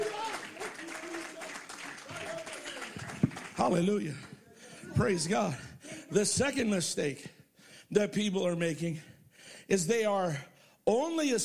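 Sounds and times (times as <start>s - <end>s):
audience clapping: 0.0s - 4.4s
speech: 3.6s - 4.3s, 5.0s - 9.1s, 9.7s - 11.4s.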